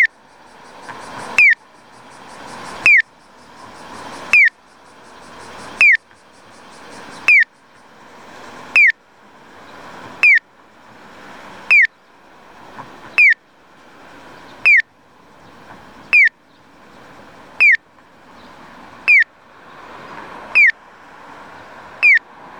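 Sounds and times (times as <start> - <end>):
acoustic pedestrian crossing signal piyo chirping at Anjo City Hall in Anjo Aichi: 0.0 - 7.8, 8.6 - 9.0, 10.2 - 10.5, 11.7 - 11.9, 13.2 - 13.4, 14.6 - 14.9, 16.1 - 16.4, 17.6 - 17.9, 19.0 - 19.4, 20.5 - 20.8, 22.0 - 22.3.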